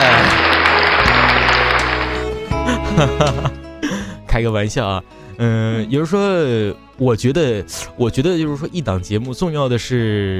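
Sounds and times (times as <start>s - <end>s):
dense clapping applause: 0.0s - 3.5s
laughter: 2.6s - 4.1s
speech: 3.0s - 3.6s, 4.4s - 10.3s.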